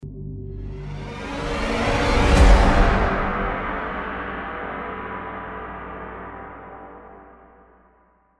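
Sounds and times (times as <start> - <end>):
music ending: 0.6 - 7.1.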